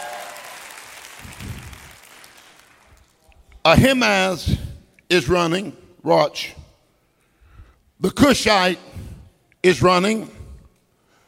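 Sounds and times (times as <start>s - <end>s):
church congregation clapping during a sermon: 0.0s - 3.4s
speech: 3.6s - 6.6s, 8.0s - 9.0s, 9.6s - 10.4s.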